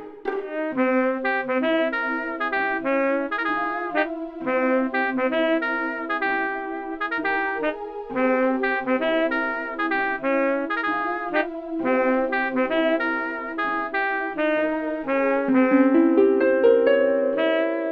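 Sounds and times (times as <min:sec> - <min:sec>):
saxophone: 0:00.5 - 0:17.8.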